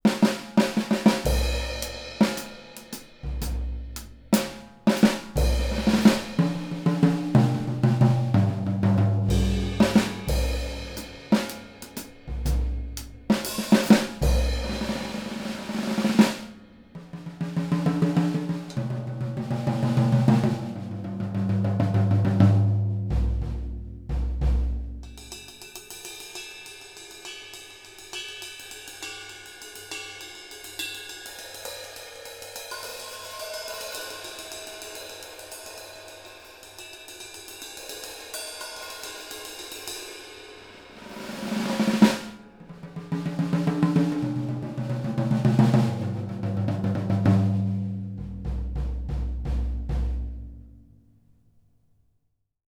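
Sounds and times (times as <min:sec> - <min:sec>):
drums recorded with AKG 414 microphone: 0:00.0 - 0:51.4.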